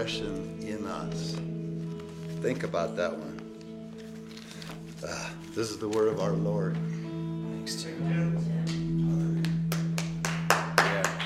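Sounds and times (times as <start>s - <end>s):
speech: 0.0s - 1.6s, 2.4s - 3.4s, 5.0s - 7.0s, 7.7s - 8.8s
church congregation clapping after a scripture reading: 8.6s - 11.2s.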